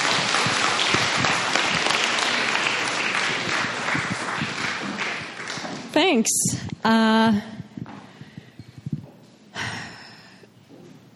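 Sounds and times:
audience applause: 0.0 - 5.9
speech: 6.0 - 7.5.

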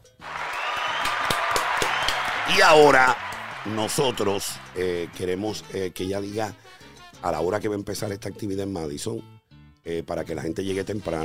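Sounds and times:
crowd applause: 0.1 - 5.6
speech: 2.5 - 11.2.

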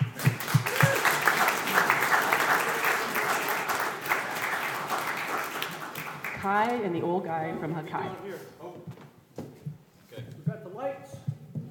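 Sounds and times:
audience applause: 0.0 - 6.6
speech: 6.5 - 8.9.

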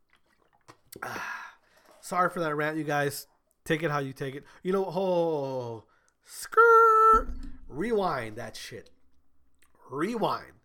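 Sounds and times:
person drinking water: 0.0 - 2.0
speech: 1.0 - 1.4, 2.0 - 9.0, 9.9 - 10.6.

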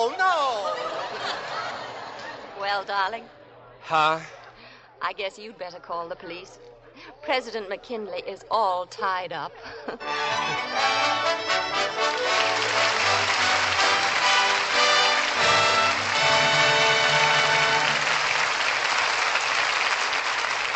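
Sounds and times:
laughter: 0.1 - 2.8, 9.6 - 11.5
speech: 2.8 - 4.4, 5.0 - 13.8
studio audience applause: 10.1 - 20.7.

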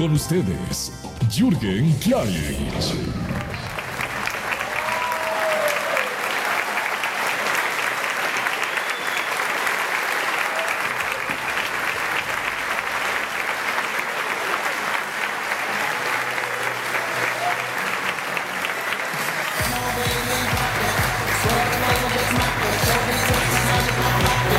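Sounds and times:
speech: 0.0 - 3.4
large audience applause: 2.9 - 24.5
faint whistles: 8.6 - 9.5.

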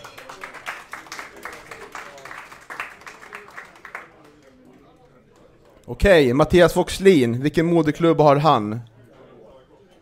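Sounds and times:
audience applause: 0.0 - 4.6
speech: 5.9 - 8.9.

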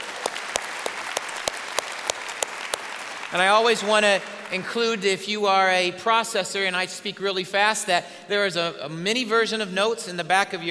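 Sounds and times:
sharp loud claps: 0.0 - 5.0
church congregation clapping: 0.0 - 5.7
speech: 3.3 - 10.6.

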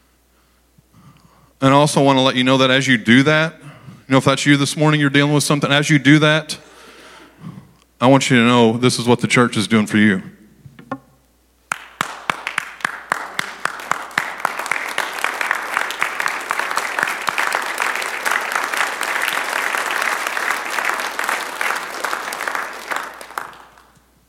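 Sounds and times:
speech: 1.6 - 6.6, 7.4 - 10.4
audience clapping: 11.7 - 24.2.

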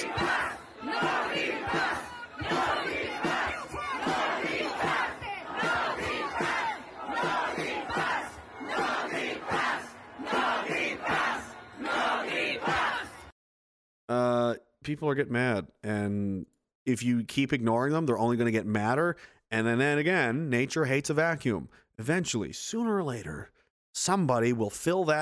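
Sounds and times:
large protest crowd chanting a slogan: 0.0 - 13.4
speech: 14.9 - 25.2.

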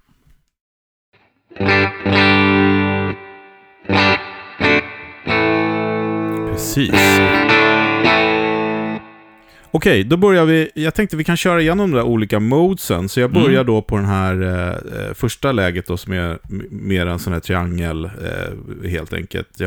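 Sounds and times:
electric guitar through Universal Audio Dream amp pedal: 1.6 - 9.3
speech: 6.7 - 7.6, 9.7 - 19.6.

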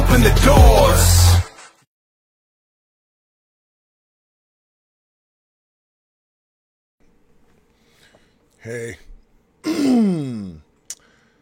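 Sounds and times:
speech: 0.2 - 1.3, 8.7 - 9.1
throat clearing: 9.6 - 10.7.

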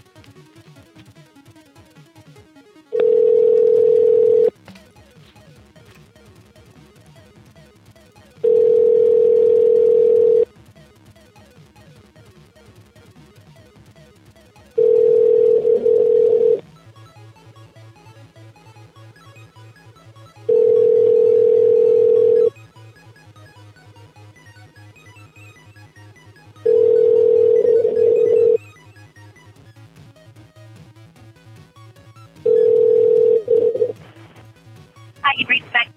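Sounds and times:
ringback tone of an outgoing call on a radio phone-in: 2.9 - 4.5, 8.4 - 10.4, 14.8 - 16.6, 20.5 - 22.6, 26.6 - 28.6, 32.5 - 33.9.

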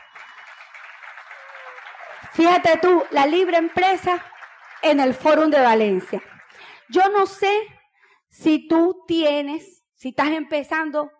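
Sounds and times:
audience applause: 0.0 - 6.9
speech: 2.2 - 6.3, 6.9 - 11.1.

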